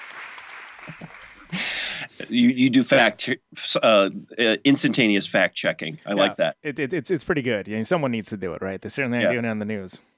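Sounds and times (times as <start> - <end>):
applause sound effect: 0.0 - 1.5
speech: 2.2 - 10.1.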